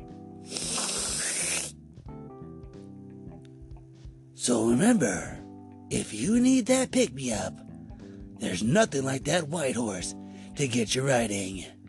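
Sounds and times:
loud nasal sniff: 0.4 - 1.8
speech: 4.4 - 7.6, 8.4 - 11.8.

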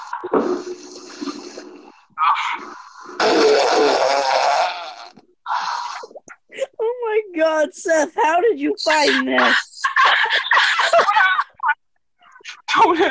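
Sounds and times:
speech: 0.1 - 0.9, 7.6 - 9.7
loud raspy fart sounds: 0.2 - 6.3
laughter: 9.0 - 11.8, 12.4 - 13.0.

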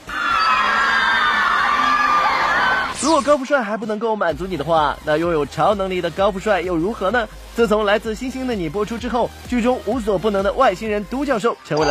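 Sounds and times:
crowd of fans screaming and cheering: 0.0 - 3.2
speech: 3.1 - 11.8.

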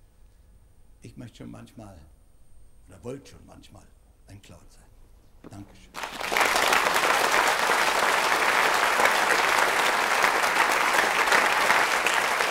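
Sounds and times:
speech: 1.1 - 2.2, 2.9 - 7.1
audience applause: 6.0 - 12.5.

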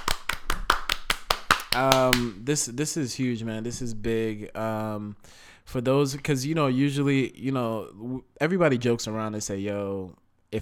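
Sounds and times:
applause: 0.0 - 2.3
speech: 1.8 - 10.6.

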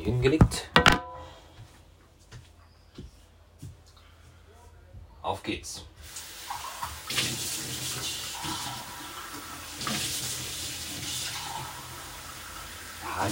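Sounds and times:
speech: 0.0 - 0.9, 5.3 - 5.9, 13.2 - 13.3
tap water rinsing out a cup: 6.1 - 12.2.

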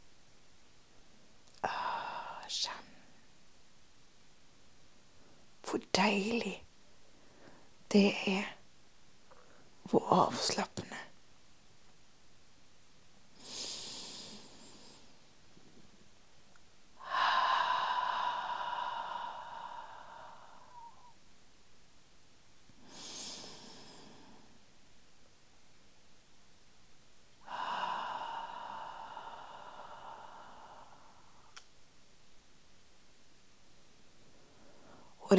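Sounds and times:
speech: 2.5 - 2.9, 5.7 - 6.6, 7.9 - 8.6, 9.9 - 11.0
deep relaxed breathing: 13.4 - 15.2, 17.0 - 21.2, 22.8 - 24.6, 27.4 - 31.6.

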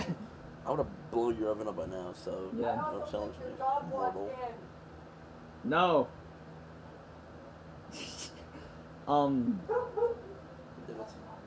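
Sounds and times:
speech: 0.7 - 4.8, 5.6 - 6.2, 9.1 - 10.3, 10.9 - 11.3
dogs barking indoors: 9.6 - 10.4.

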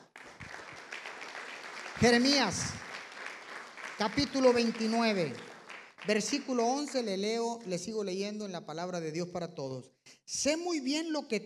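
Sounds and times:
audience clapping: 0.0 - 7.6
speech: 2.0 - 2.8, 4.0 - 11.4.

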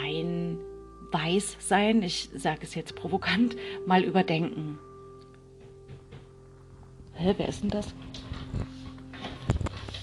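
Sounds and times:
speech: 1.1 - 4.9, 7.2 - 8.7
knocking on a door: 5.6 - 6.3.

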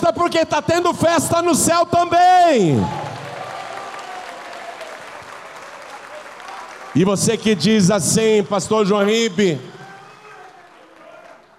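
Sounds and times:
speech: 0.1 - 3.0, 7.0 - 9.8
audience applauding: 2.8 - 11.5.

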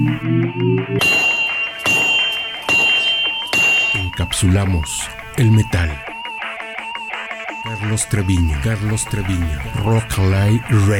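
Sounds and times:
speech: 0.1 - 1.0, 4.4 - 6.1, 7.6 - 10.9
hammer blows on a forge anvil: 1.0 - 4.4.

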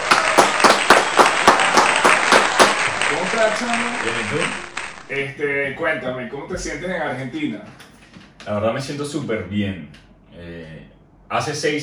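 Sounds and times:
applause: 0.0 - 5.1
speech: 3.4 - 11.8.

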